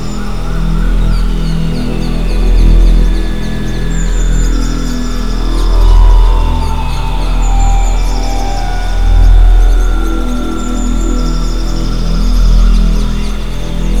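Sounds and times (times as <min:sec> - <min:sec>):
ambient sound: 0:00.5 - 0:13.9
Rife frequency tone: 0:03.8 - 0:13.3.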